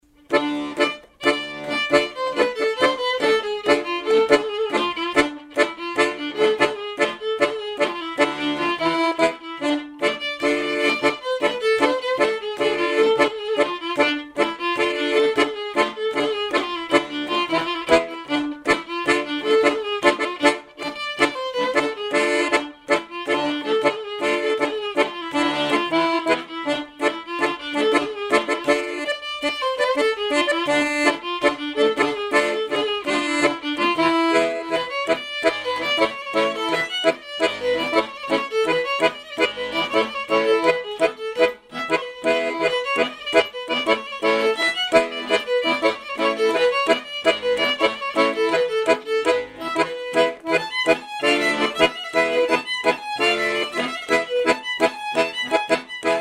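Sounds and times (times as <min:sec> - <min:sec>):
folk dance tune: 0:00.0 - 0:56.1.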